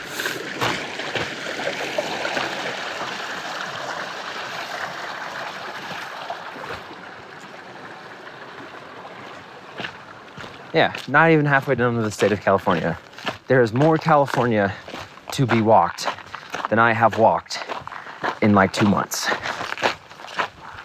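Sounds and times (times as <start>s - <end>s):
flowing mountain stream: 0.0s - 14.2s
speech: 10.8s - 14.8s, 15.4s - 16.1s, 16.7s - 17.6s, 18.4s - 19.4s.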